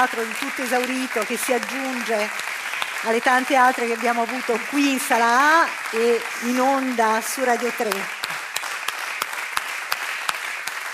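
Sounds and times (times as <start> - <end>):
speech: 0.0 - 8.4
hall full of people applauding: 0.0 - 10.9.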